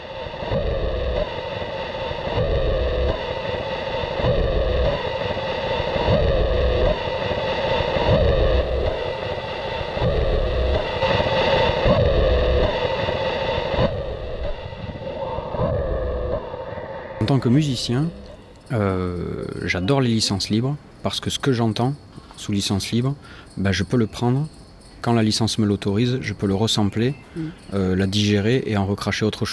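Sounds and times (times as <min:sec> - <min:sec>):
saturated harsh noise drone music: 0:00.0 - 0:19.8
speech: 0:17.4 - 0:29.5.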